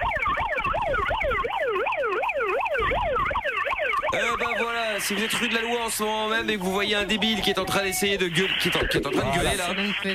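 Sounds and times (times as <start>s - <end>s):
siren: 0.0s - 10.1s
speech: 5.0s - 10.1s.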